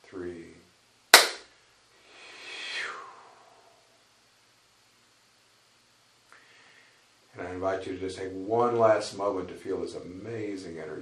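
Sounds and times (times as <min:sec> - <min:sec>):
single hand clap: 0:01.1 - 0:01.5
speech: 0:07.6 - 0:11.0.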